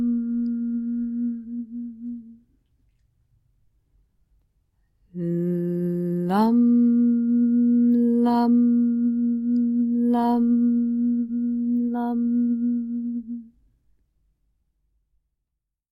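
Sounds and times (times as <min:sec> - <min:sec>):
LAM bija mantra chanting for the root chakra: 0:00.0 - 0:02.4, 0:05.2 - 0:13.5.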